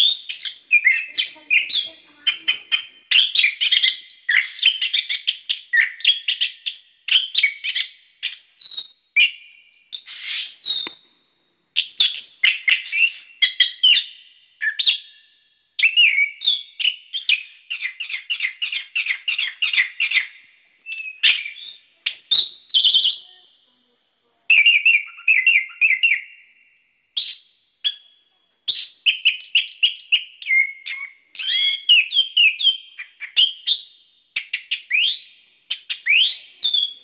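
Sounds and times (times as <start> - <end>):
bird singing: 0.0 - 11.1, 11.8 - 23.6, 24.5 - 37.0.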